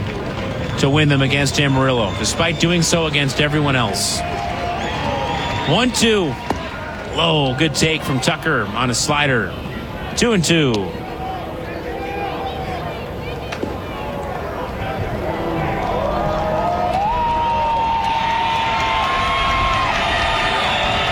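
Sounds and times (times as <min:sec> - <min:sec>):
baseball crowd cheering: 0:00.0 - 0:21.1
speech: 0:00.8 - 0:04.5, 0:05.6 - 0:06.5, 0:07.2 - 0:11.0
whistles: 0:01.6 - 0:06.6, 0:17.3 - 0:21.1.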